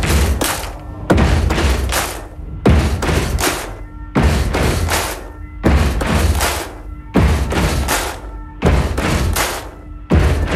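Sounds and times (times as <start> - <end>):
audience clapping hands: 0.0 - 2.4, 3.0 - 3.8, 4.6 - 5.3, 6.0 - 6.9, 7.6 - 9.8
audience stomping feet: 0.0 - 10.5.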